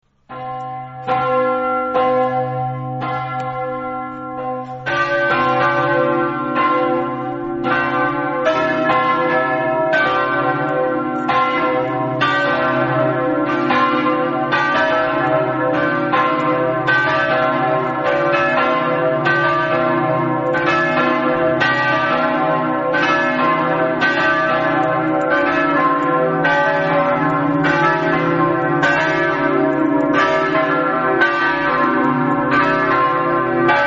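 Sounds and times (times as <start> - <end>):
bells ringing: 0.3 - 33.8.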